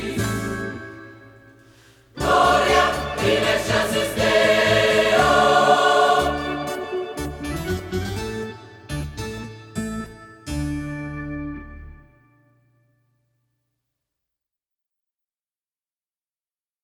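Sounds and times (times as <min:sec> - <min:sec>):
gospel choir singing: 0:00.0 - 0:08.1.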